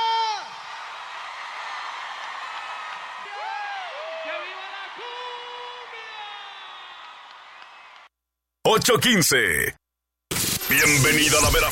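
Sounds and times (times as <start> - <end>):
loud applause: 0.0 - 8.1
speech: 8.7 - 9.8, 10.7 - 11.7.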